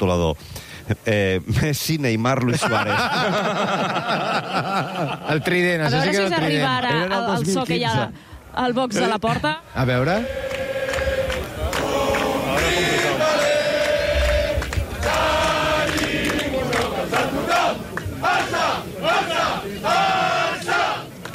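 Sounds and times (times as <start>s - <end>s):
speech: 0.0s - 10.5s
laughter: 2.4s - 6.7s
large crowd singing a football club anthem in unison: 9.8s - 21.1s.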